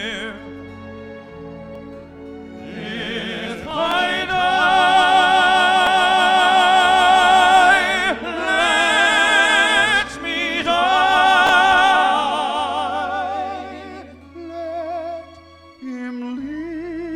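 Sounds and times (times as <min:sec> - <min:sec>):
waiters singing: 0:02.6 - 0:14.2.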